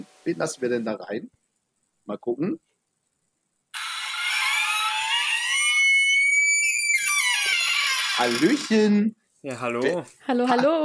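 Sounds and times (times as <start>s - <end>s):
speech: 0.0s - 1.4s, 2.1s - 2.7s, 8.2s - 10.8s
squeaky door creaking open: 3.7s - 8.9s.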